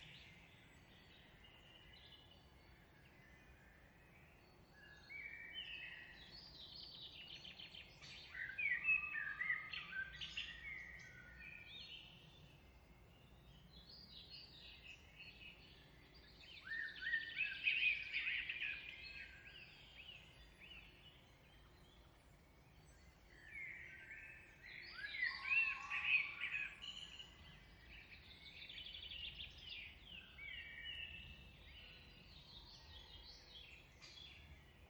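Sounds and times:
songbirds singing in evening UK countryside woodland: 0:00.0 - 0:34.8.

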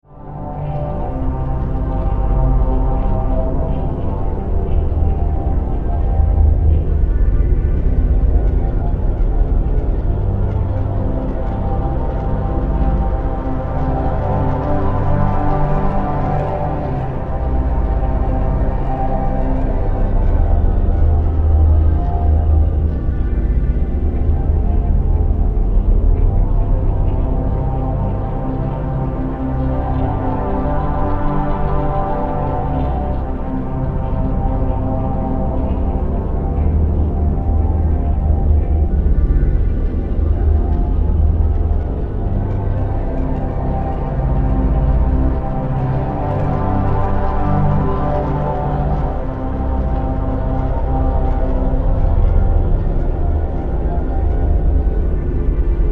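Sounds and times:
horror drone: 0:00.1 - 0:55.9.

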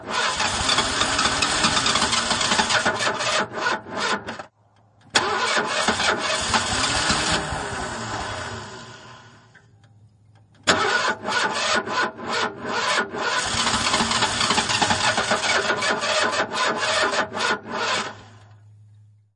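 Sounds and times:
car with weak battery attempting to start and sputtering: 0:00.1 - 0:18.9.

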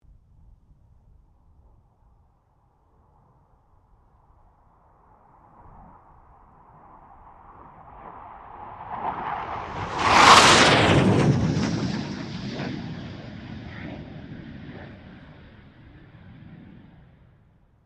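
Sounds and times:
FA-18 Hornet jet passing: 0:05.4 - 0:17.5.

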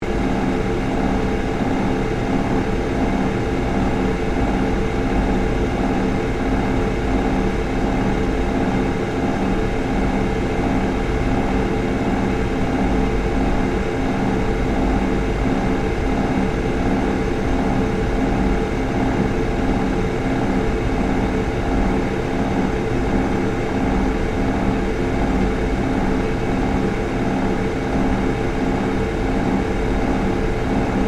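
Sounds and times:
industrial fan motor running: 0:00.0 - 0:31.0.

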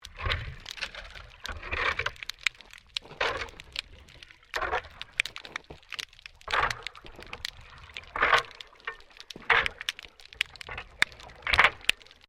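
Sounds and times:
shovel scraping underwater during maintenance work: 0:00.0 - 0:12.2.

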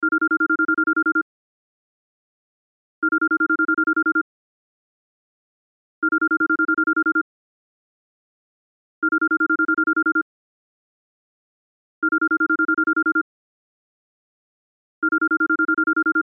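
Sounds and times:
cell phone ringtone: 0:00.0 - 0:01.2, 0:03.0 - 0:04.2, 0:06.0 - 0:07.2, 0:09.0 - 0:10.2, 0:12.0 - 0:13.2, 0:15.0 - 0:16.2.

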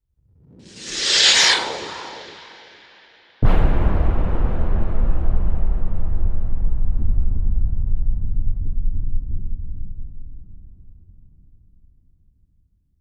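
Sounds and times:
missile whoosh: 0:00.7 - 0:04.3
missile explosion: 0:00.7 - 0:10.2.

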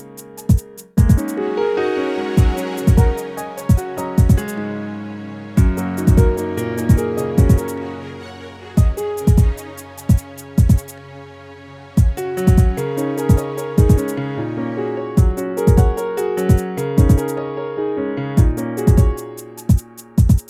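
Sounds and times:
beat loop: 0:00.0 - 0:01.4, 0:02.4 - 0:04.6, 0:05.6 - 0:07.8, 0:08.8 - 0:11.0, 0:12.0 - 0:14.2, 0:15.2 - 0:17.3, 0:18.4 - 0:20.4
piano loop: 0:00.0 - 0:20.4
strings loop: 0:00.0 - 0:20.4.

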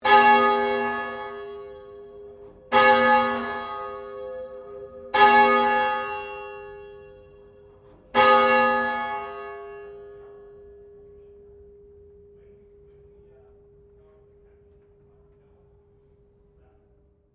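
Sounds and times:
St Pauls Cathedral Melbourne bell ringing: 0:00.0 - 0:13.2.

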